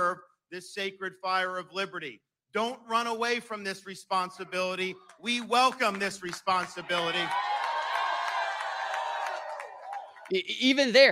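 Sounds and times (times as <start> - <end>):
speech: 0.1 - 7.5, 10.3 - 11.0
scattered claps: 5.0 - 10.3
crowd cheering and whooping at an Iowa caucus event: 6.6 - 10.3.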